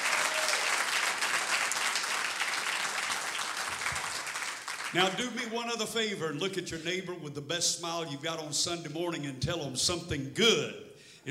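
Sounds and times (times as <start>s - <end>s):
audience clapping hands in praise: 0.0s - 5.5s
speech: 4.9s - 11.2s.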